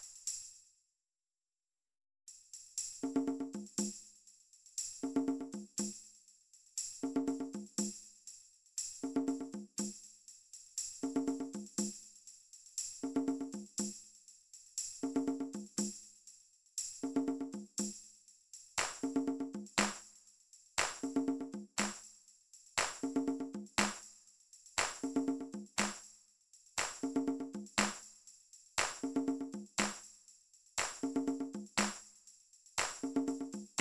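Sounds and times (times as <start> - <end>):
drum track: 3.0 - 4.0, 5.0 - 6.0, 7.0 - 7.9, 9.0 - 10.0, 11.0 - 12.0, 13.0 - 14.0, 15.0 - 16.0, 17.0 - 17.9, 18.8 - 20.0, 20.8 - 22.0, 22.8 - 24.0, 24.8 - 26.0, 26.8 - 28.0, 28.8 - 30.0, 30.8 - 32.0, 32.8 - 33.7.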